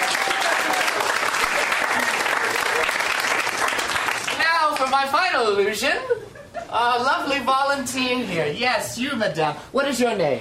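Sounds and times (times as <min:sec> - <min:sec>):
round of applause: 0:00.0 - 0:05.0
speech: 0:05.0 - 0:10.3.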